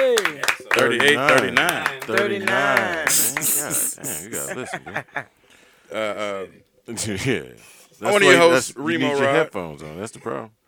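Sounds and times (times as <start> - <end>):
clapping: 0.0 - 3.4
speech: 0.8 - 10.6.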